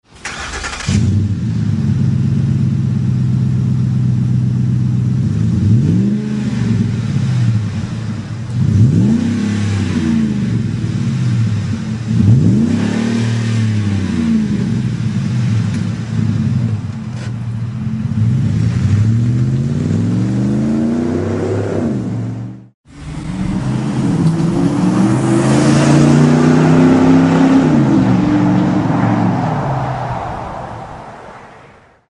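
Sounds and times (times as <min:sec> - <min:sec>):
Magnaflow exhaust system: 0:00.9 - 0:31.8.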